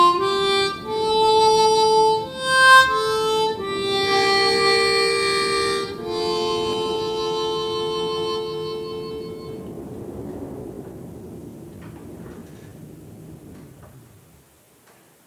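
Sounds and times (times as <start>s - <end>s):
harmonica solo in F: 0.0s - 9.6s.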